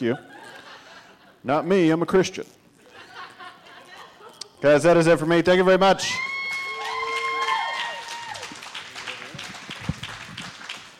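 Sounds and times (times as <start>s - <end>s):
speech: 0.0s - 0.4s, 1.4s - 2.6s, 4.6s - 6.3s
laughter: 0.0s - 1.4s, 2.8s - 4.6s
audience whistles and whoops: 6.1s - 8.6s
audience clapping: 6.4s - 10.9s.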